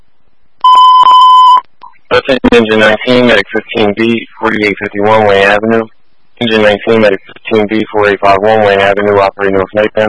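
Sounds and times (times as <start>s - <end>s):
electronic alarm: 0.6s - 2.0s
speech: 2.1s - 10.0s.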